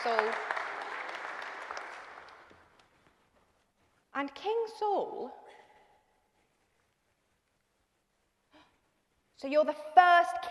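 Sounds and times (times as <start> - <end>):
speech: 0.0 - 0.5, 4.2 - 5.4, 9.4 - 10.5
audience applause: 0.0 - 2.8.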